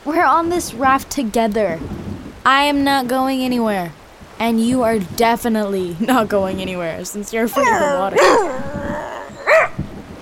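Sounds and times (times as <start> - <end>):
speech: 0.1 - 9.0
dog barking: 7.6 - 10.2.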